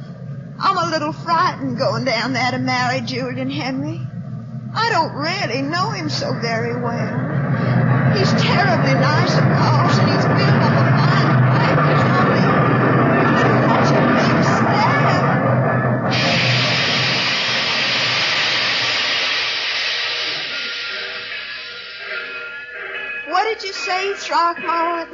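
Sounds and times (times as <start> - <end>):
steam train pulling into station: 0.0 - 25.1
speech: 0.7 - 4.1, 4.7 - 11.2, 23.9 - 25.1
steam train hissing steam: 4.5 - 15.3, 16.1 - 25.1.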